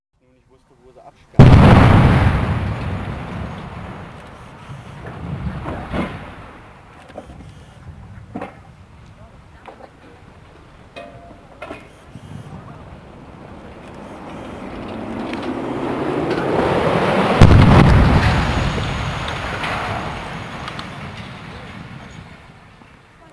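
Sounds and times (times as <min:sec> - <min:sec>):
explosion: 0:01.4 - 0:06.8, 0:12.4 - 0:22.8.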